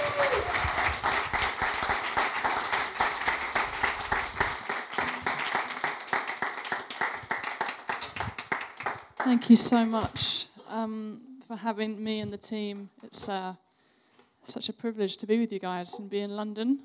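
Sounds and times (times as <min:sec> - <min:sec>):
audience applause: 0:00.0 - 0:09.4
speech: 0:09.3 - 0:13.6, 0:14.5 - 0:16.8.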